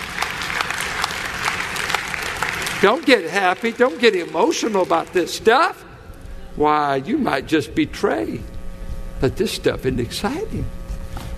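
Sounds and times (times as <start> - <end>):
audience clapping: 0.0 - 5.8
speech: 2.8 - 5.8, 6.6 - 8.5, 9.2 - 10.8.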